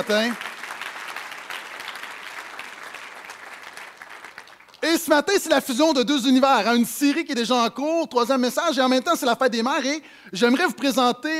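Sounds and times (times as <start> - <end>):
speech: 0.0 - 0.4, 4.8 - 11.3
audience applause: 0.0 - 4.8.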